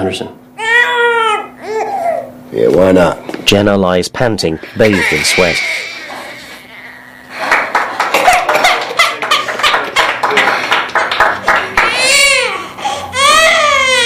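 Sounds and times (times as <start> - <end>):
speech: 0.0 - 0.4, 2.5 - 5.9
newborn baby crying: 0.6 - 2.3, 4.6 - 7.4, 11.8 - 14.0
laughter: 7.2 - 12.0.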